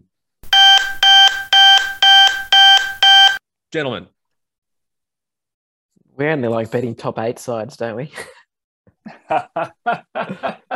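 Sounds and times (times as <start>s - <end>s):
loud diabetes monitor alarm beeping: 0.4s - 3.4s
speech: 3.7s - 4.2s, 6.2s - 8.4s, 9.0s - 10.7s
laughter: 9.0s - 10.7s.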